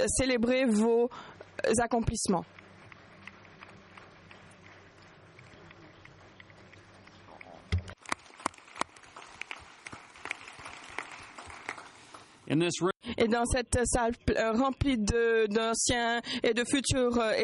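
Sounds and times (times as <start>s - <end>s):
speech: 0.0s - 2.6s, 12.6s - 17.4s
audience applause: 2.6s - 12.4s.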